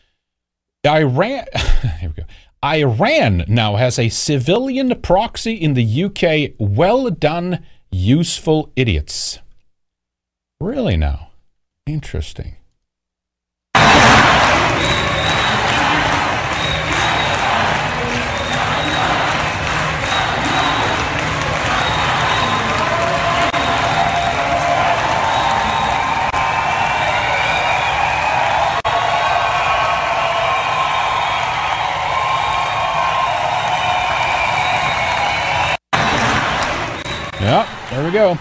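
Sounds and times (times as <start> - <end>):
speech: 0.8 - 9.4, 10.6 - 11.3, 11.9 - 12.6, 38.1 - 38.3
large crowd applauding and cheering: 13.8 - 38.3.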